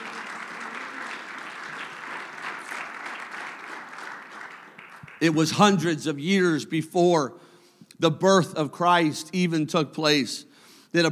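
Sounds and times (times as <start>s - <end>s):
audience clapping hands: 0.0s - 5.8s
speech: 5.2s - 11.1s.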